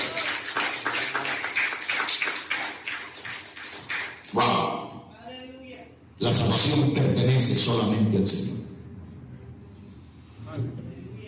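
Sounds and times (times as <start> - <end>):
audience applause: 0.0 - 4.2
speech: 6.3 - 8.6.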